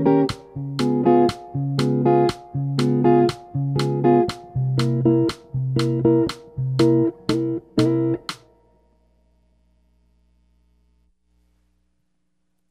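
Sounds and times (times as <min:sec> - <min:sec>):
jazz music: 0:00.0 - 0:08.4.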